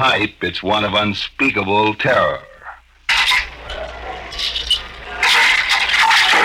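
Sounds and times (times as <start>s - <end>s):
speech: 0.0s - 2.5s
heavy jail door grinding and rattling with metallic scrape: 3.1s - 6.4s.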